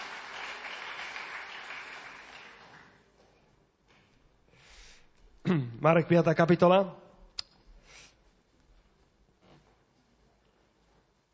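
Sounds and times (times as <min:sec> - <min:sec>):
church congregation applauding pupils who finished the school year: 0:00.0 - 0:03.1
speech: 0:05.5 - 0:07.0.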